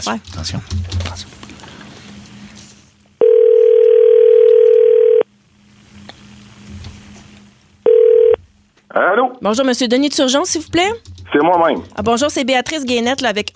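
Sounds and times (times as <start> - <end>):
speech: 0.0 - 1.4, 9.0 - 13.5
telephone line tone: 3.2 - 5.3, 7.8 - 8.4.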